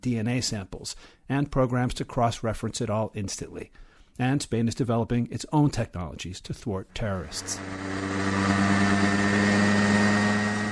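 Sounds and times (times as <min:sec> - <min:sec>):
speech: 0:00.0 - 0:09.0
small remote-controlled helicopter engine droning: 0:07.0 - 0:10.6.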